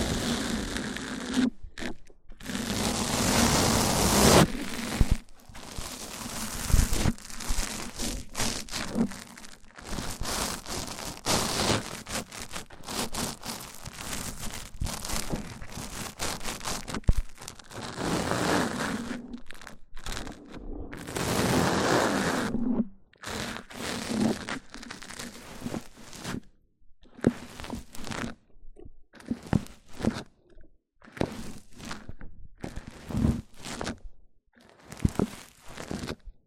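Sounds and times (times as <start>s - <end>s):
crinkly tearing textures: 0.0s - 21.4s
rough scraping and rubbing against a microphone: 0.0s - 26.5s, 27.2s - 28.4s, 29.2s - 34.1s, 34.7s - 36.4s.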